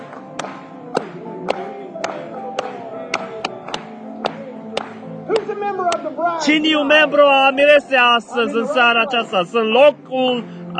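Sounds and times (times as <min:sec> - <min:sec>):
audience clapping in rhythm: 0:00.0 - 0:07.3
continuous musical backdrop: 0:00.0 - 0:10.7
speech: 0:05.4 - 0:10.7.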